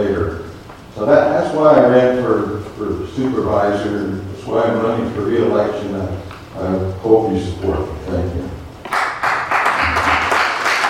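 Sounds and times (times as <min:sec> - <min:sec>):
speech: 0:01.0 - 0:08.6
crowd applause: 0:08.9 - 0:10.8.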